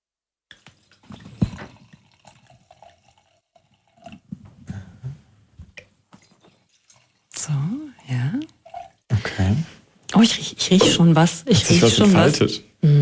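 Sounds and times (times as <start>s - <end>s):
wine being poured into glasses: 0.5s - 4.3s, 5.8s - 9.4s
speech: 10.2s - 13.0s.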